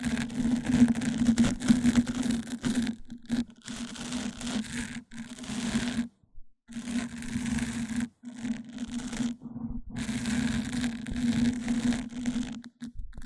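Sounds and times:
scraping and crackling rubs against the microphone: 0.0 - 13.2
low hum: 9.4 - 10.1.

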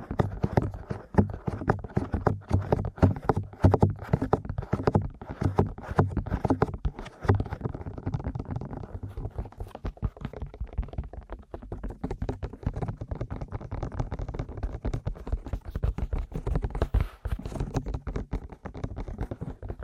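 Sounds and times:
aggressive ear massage and tapping: 0.0 - 19.8.

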